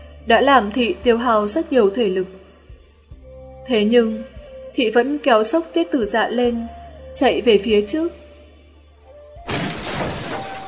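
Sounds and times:
speech: 0.2 - 2.4, 3.7 - 8.2
bridge surface shattering and breaking apart sound effect: 9.5 - 10.6.

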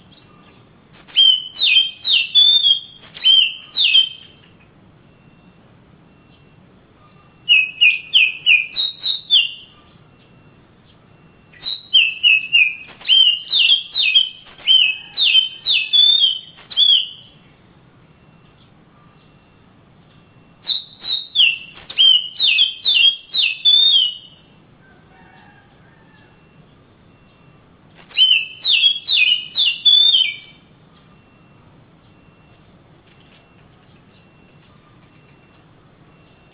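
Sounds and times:
Oriental magpie-robin whistling: 0.0 - 4.6, 6.2 - 10.5, 11.1 - 17.6, 20.4 - 24.5, 27.1 - 31.5.

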